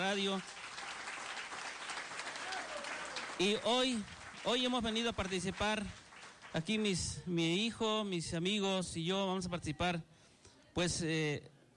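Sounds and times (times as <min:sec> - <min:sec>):
audience applause for the organizers of a radio contest: 0:00.0 - 0:07.0
speech: 0:00.1 - 0:00.6, 0:03.4 - 0:10.1, 0:10.8 - 0:11.5.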